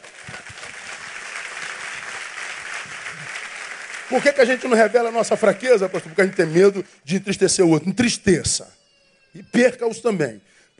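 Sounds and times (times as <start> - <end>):
audience applause: 0.0 - 6.9
speech: 4.1 - 10.7.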